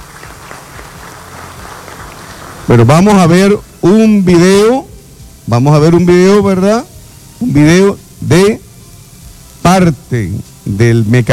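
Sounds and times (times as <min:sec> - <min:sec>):
crowd applauding: 0:00.0 - 0:03.0
speech: 0:02.7 - 0:04.9, 0:05.5 - 0:08.6, 0:09.7 - 0:11.3.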